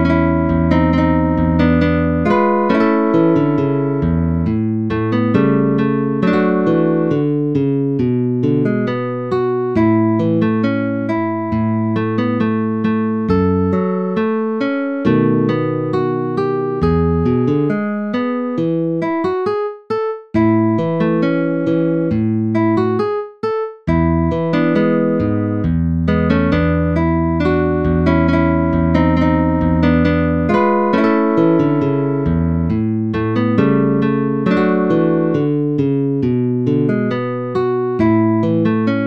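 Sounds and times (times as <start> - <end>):
guitar solo in A major: 0.0 - 19.6, 20.4 - 23.1, 23.9 - 39.0.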